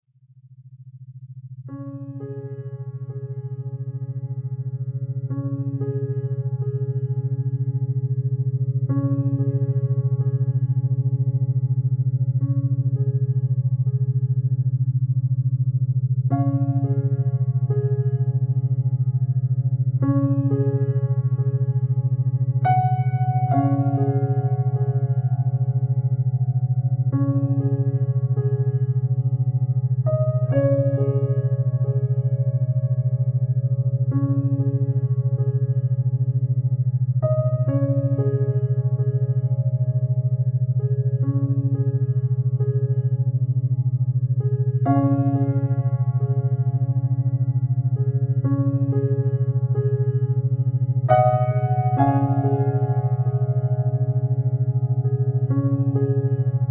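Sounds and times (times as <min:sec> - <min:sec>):
healing piano for delta brainwave entrainment: 0:01.4 - 0:56.6.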